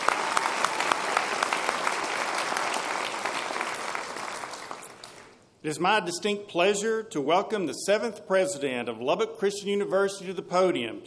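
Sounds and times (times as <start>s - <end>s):
audience applause at a university gathering for the library faculty: 0.0s - 5.4s
speech: 5.6s - 11.0s.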